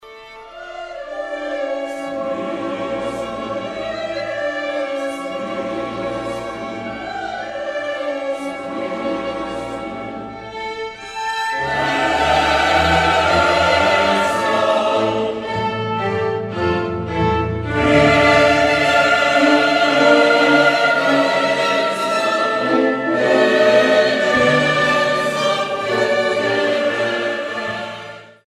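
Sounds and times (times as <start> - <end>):
sacred choral piece in D minor: 0.0 - 28.4.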